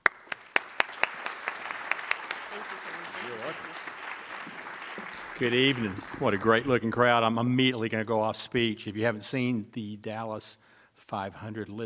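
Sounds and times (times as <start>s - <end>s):
audience applause welcoming a speaker: 0.0s - 7.1s
speech: 5.4s - 11.8s.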